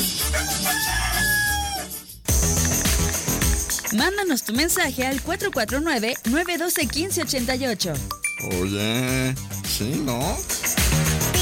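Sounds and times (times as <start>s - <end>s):
upbeat music with a driving beat: 0.0s - 11.4s
rooster crowing: 0.1s - 2.1s
speech: 3.9s - 10.6s.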